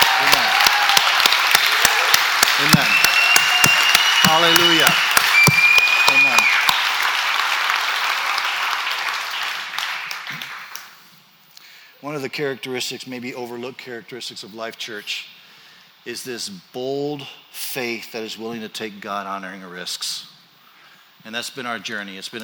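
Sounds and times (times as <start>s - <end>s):
audience hand clapping: 0.0s - 11.0s
speech: 4.4s - 5.1s, 12.0s - 15.4s, 16.0s - 20.3s, 21.2s - 22.4s.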